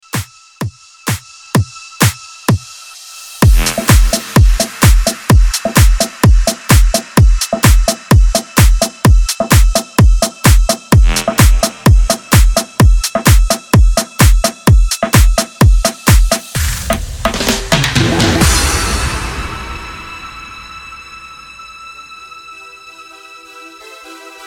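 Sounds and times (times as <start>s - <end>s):
128 BPM mashup music: 3.4s - 19.2s.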